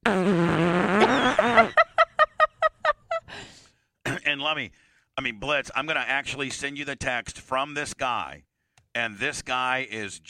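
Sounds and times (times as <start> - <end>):
fart: 0.0 - 1.7
laughter: 1.0 - 3.3
speech: 4.5 - 10.2.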